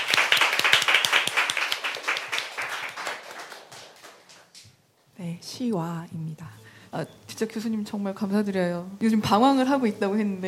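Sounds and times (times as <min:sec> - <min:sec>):
audience applause welcoming a singer: 0:00.0 - 0:04.6
speech: 0:05.2 - 0:10.4.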